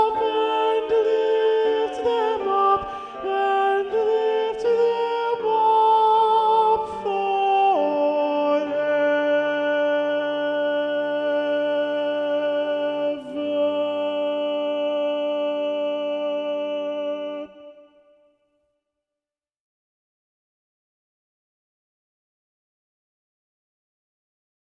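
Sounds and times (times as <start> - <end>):
alto voice: 0.0 - 17.8.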